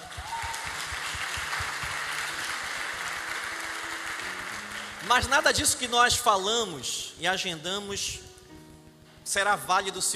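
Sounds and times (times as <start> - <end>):
applause: 0.0 - 5.9
speech: 5.1 - 8.3, 9.3 - 10.1.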